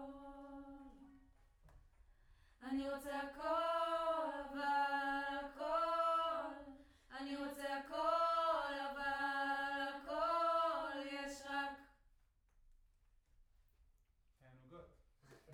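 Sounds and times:
distant choir: 2.6 - 11.8.

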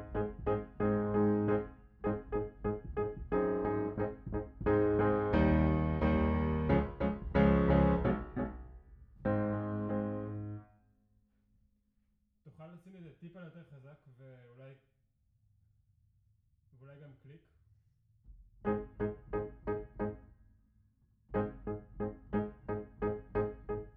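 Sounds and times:
piano: 0.0 - 10.7, 18.6 - 20.3, 21.3 - 23.9.

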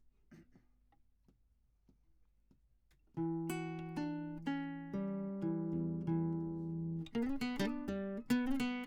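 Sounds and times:
classical guitar: 3.1 - 8.8.

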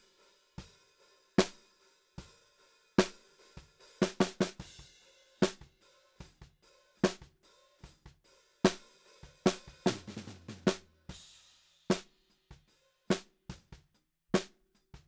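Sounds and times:
snare drum: 1.4 - 1.6, 3.0 - 11.3, 11.9 - 15.0.

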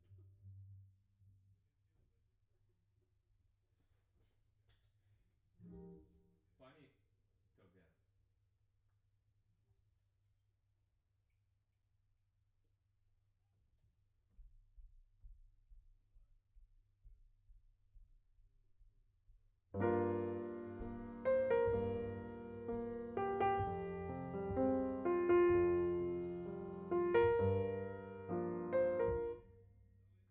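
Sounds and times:
piano note B: 19.8 - 29.5.

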